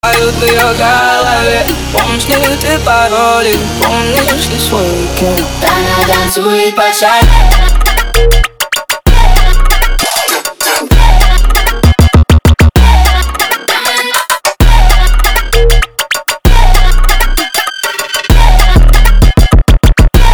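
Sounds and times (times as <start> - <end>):
funk remix: 0.0 - 20.3.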